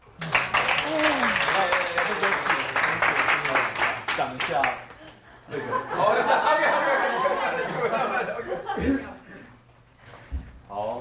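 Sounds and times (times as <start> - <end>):
enthusiastic applause: 0.0 - 5.0
speech: 4.5 - 4.9, 5.5 - 6.6
laughter: 5.0 - 9.5.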